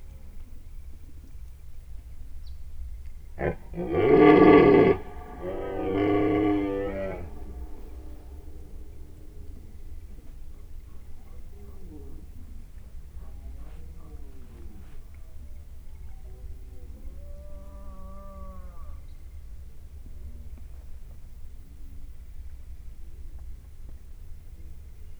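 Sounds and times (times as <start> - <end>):
red deer answering call from afar in nature: 3.4 - 9.2.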